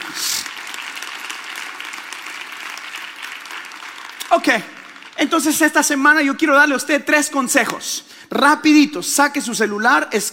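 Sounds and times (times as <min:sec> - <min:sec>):
audience applauding: 0:00.0 - 0:06.2
speech: 0:04.4 - 0:10.3.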